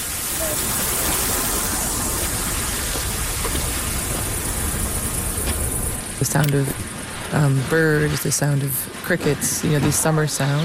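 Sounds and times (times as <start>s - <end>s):
lawn sprinkler spraying water: 0.0s - 6.0s
speech: 6.2s - 10.6s.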